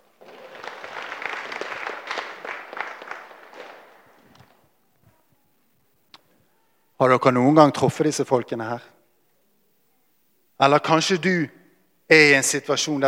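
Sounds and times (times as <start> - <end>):
audience applause: 0.0 - 4.7
speech: 7.0 - 8.9, 10.6 - 13.0.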